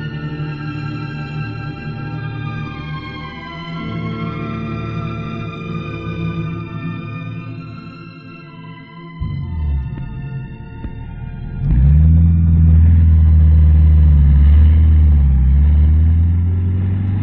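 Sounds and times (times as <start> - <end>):
pickup truck engine revving setting off along a dusty road: 9.2 - 17.2.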